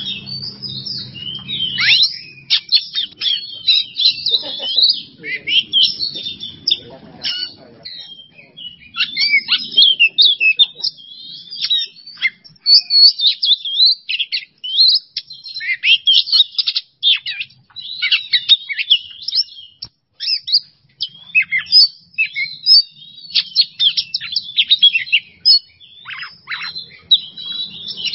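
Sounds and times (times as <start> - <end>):
Oriental magpie-robin song of clipped whistles and buzzy trills: 0.0 - 28.1
laughter: 3.6 - 7.9, 9.6 - 11.0.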